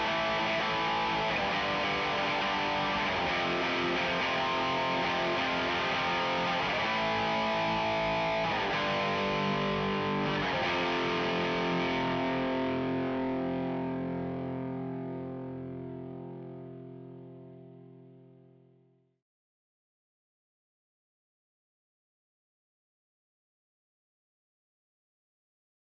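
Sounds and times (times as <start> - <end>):
bass guitar: 0.0 - 17.8.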